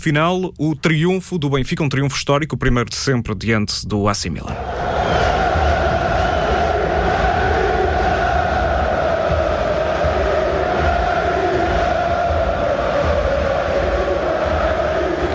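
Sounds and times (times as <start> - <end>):
speech: 0.0 - 5.3
football fans celebrating in stadium stands, chanting and singing: 4.6 - 15.3.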